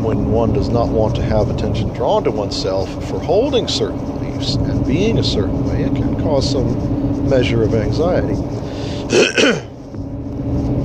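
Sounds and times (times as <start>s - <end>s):
speech: 0.0s - 9.7s
person clearing throat: 9.1s - 9.7s.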